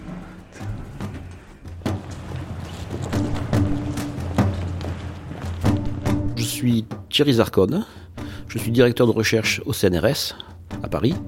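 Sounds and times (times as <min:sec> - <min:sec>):
heavy doors opening: 0:00.0 - 0:06.6
speech: 0:06.6 - 0:11.2.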